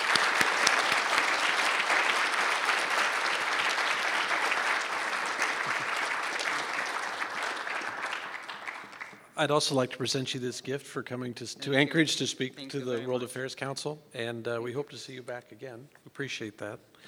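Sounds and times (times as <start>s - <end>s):
audience applause: 0.0s - 9.4s
speech: 9.4s - 17.0s.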